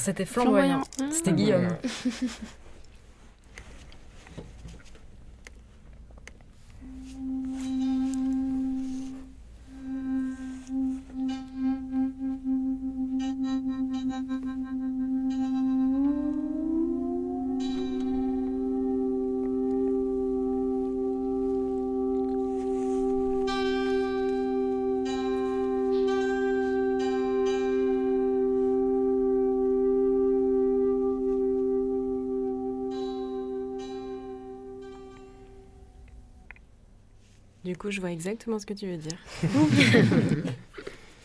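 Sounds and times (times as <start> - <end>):
speech: 0.0 - 2.6, 37.8 - 40.7
laughter: 1.7 - 2.6, 39.3 - 40.8
moiré interference sound effect synthetic droning tones: 6.8 - 36.6.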